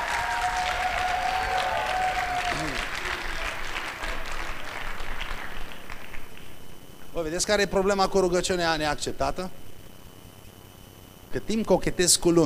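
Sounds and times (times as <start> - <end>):
audience applause for actors: 0.0 - 6.8
speech: 7.2 - 9.6, 11.3 - 12.4.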